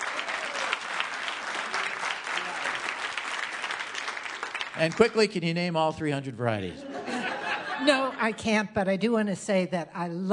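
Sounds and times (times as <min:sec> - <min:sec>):
crowd applauding: 0:00.0 - 0:06.0
speech: 0:04.8 - 0:06.9, 0:07.8 - 0:10.3
laughter: 0:06.6 - 0:08.4.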